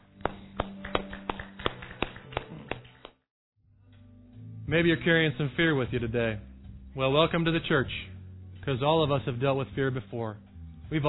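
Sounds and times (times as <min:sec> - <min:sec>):
hand clapping: 0:00.0 - 0:03.2
speech: 0:04.7 - 0:08.1, 0:08.7 - 0:11.0.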